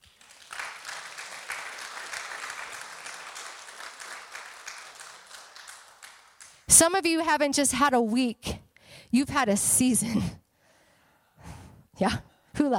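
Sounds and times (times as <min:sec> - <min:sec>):
crowd clapping: 0:00.0 - 0:06.8
speech: 0:06.7 - 0:10.4, 0:12.0 - 0:12.7.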